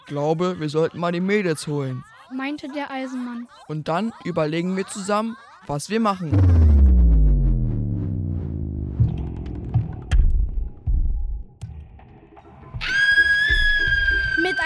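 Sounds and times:
speech: 0.1s - 6.6s
low throbbing drone: 6.3s - 11.2s
shrill scream: 12.8s - 14.6s.

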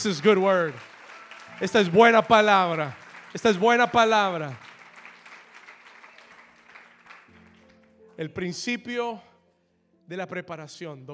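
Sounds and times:
speech: 0.0s - 0.9s, 1.6s - 4.7s, 8.2s - 9.3s, 10.1s - 11.1s
audience applause: 0.0s - 7.9s.

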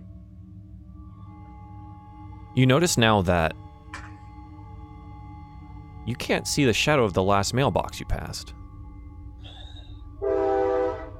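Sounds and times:
low train rumble: 0.0s - 11.1s
speech: 2.6s - 4.0s, 6.1s - 8.6s
train horn blast: 9.5s - 11.1s.

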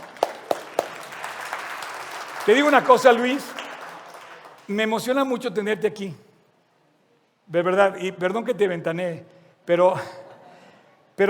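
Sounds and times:
audience applause: 0.0s - 4.7s
speech: 2.4s - 3.5s, 4.7s - 6.2s, 7.5s - 10.2s.

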